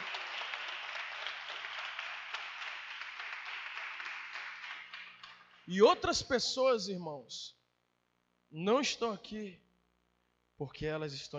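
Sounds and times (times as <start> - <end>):
audience applauding: 0.0 - 5.7
speech: 5.7 - 7.6, 8.5 - 9.6, 10.6 - 11.3.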